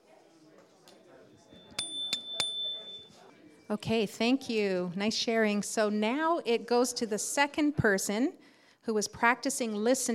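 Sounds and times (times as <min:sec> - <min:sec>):
small bell signalling the next turn: 0:01.4 - 0:03.2
speech: 0:03.7 - 0:10.1.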